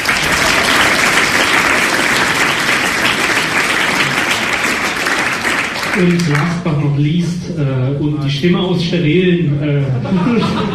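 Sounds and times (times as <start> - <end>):
audience applause: 0.0 - 6.6
speech: 6.0 - 10.7
laughter: 9.7 - 10.7.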